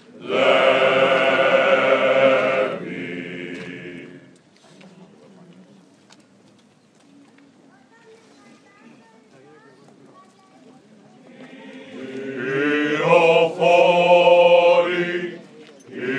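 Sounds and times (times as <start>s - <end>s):
Easter choir singing in Corfu: 0.1s - 4.4s, 11.3s - 16.1s.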